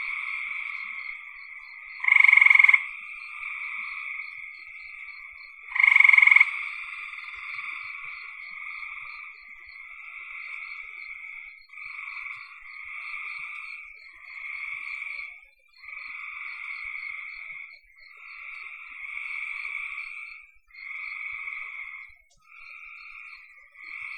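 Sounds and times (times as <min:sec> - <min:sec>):
frogs calling in trills: 0:00.0 - 0:24.1.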